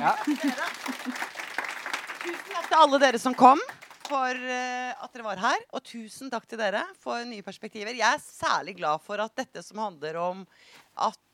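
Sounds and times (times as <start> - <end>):
speech: 0.0 - 1.0, 2.8 - 11.3
audience applause: 0.0 - 4.3.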